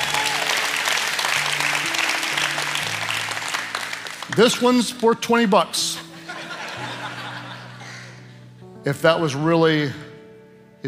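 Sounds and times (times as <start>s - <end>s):
audience applause: 0.0s - 4.8s
speech: 4.4s - 6.0s, 8.8s - 10.0s
laughter: 5.8s - 8.3s.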